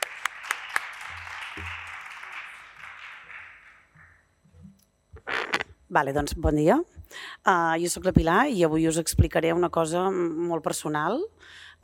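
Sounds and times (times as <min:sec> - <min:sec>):
audience applause: 0:00.0 - 0:04.2
speech: 0:05.9 - 0:11.8.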